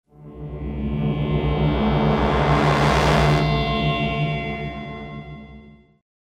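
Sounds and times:
transition sound: 0:01.1 - 0:03.9.

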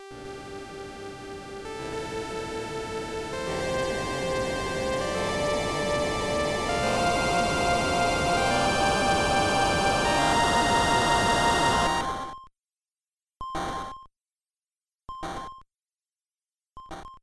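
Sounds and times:
distorted sound ending: 0:00.5 - 0:12.1.

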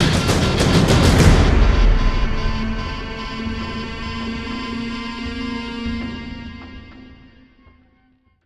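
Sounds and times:
drum fill: 0:00.0 - 0:05.6
guitar feedback: 0:00.0 - 0:08.2.

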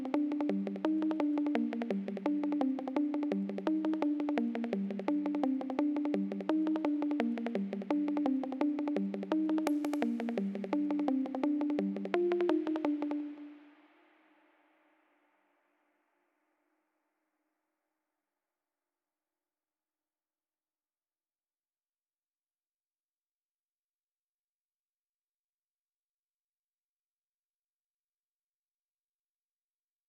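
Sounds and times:
melody: 0:00.0 - 0:13.6.

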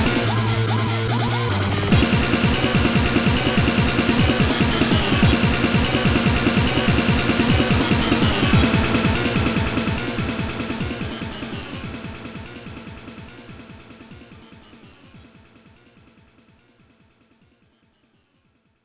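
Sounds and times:
boss battle background music: 0:00.0 - 0:01.1, 0:01.7 - 0:15.2.

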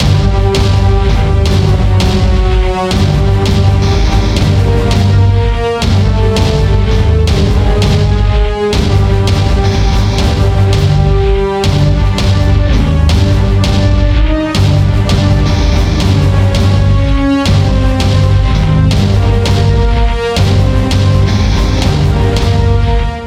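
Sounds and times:
tense music loop: 0:00.0 - 0:23.2.

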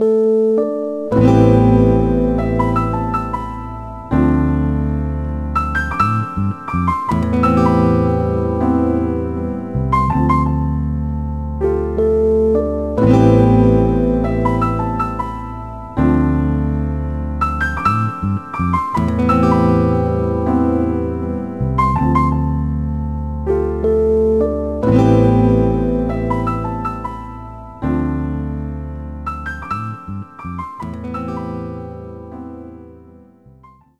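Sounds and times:
sad song: 0:00.0 - 0:33.9.

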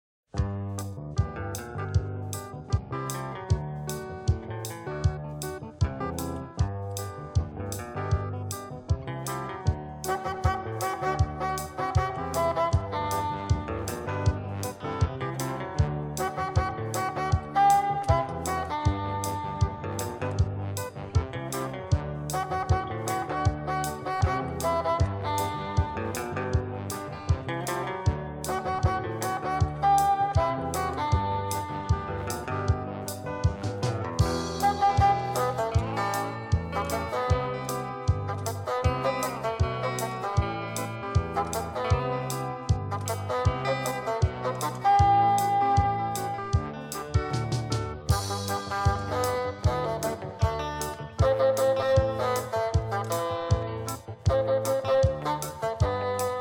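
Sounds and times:
lo-fi instrumental music: 0:00.3 - 0:56.3.

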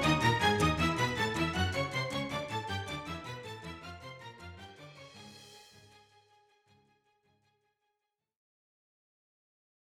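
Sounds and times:
tension music: 0:00.0 - 0:06.0.

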